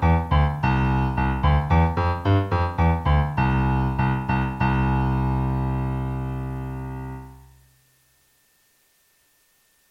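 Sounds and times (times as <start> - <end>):
classical music recording: 0.0 - 7.6.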